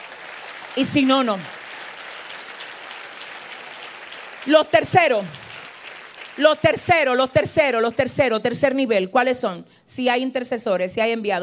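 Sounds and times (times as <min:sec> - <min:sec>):
crowd applauding: 0:00.0 - 0:08.0
speech: 0:00.8 - 0:01.6, 0:04.4 - 0:05.4, 0:06.4 - 0:11.4.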